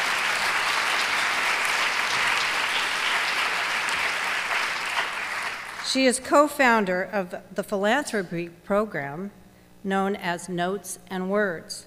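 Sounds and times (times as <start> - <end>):
audience applause: 0.0 - 5.9
speech: 5.9 - 11.8.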